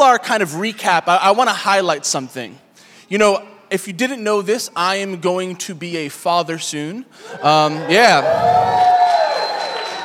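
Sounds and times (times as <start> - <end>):
speech: 0.0 - 9.0
audience clapping: 8.2 - 10.0.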